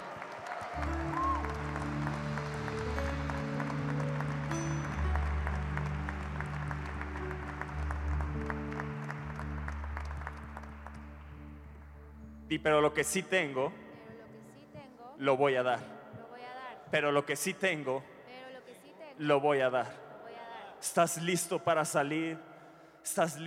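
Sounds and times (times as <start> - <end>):
audience applauding loudly: 0.0 - 11.8
sustained organ or keyboard chords: 0.0 - 13.8
speech: 12.5 - 13.8, 15.2 - 16.0, 16.9 - 18.1, 19.2 - 20.0, 20.8 - 23.4.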